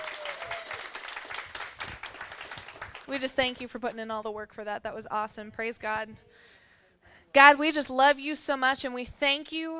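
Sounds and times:
audience clapping: 0.0 - 3.2
speech: 3.1 - 6.5, 7.4 - 9.7.

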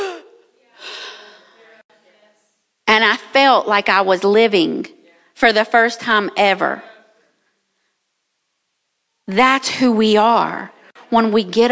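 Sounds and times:
person imitating a gasp for air after holding breath underwater: 0.0 - 1.6
speech: 3.5 - 6.9, 9.3 - 11.7.

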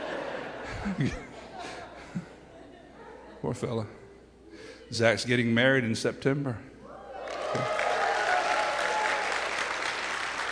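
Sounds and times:
laughter: 0.0 - 3.8
speech: 0.8 - 1.3, 3.4 - 4.0, 4.9 - 6.7, 7.5 - 7.8
audience clapping: 7.2 - 10.5.

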